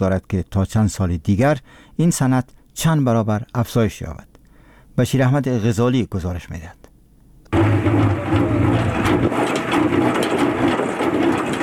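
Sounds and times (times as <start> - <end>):
speech: 0.0 - 4.3, 5.0 - 6.8
honey extractor machine running: 7.6 - 11.6.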